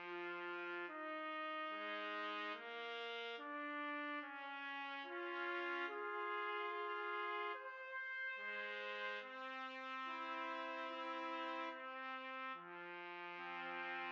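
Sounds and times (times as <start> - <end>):
trumpet trio playing: 0.1 - 14.1.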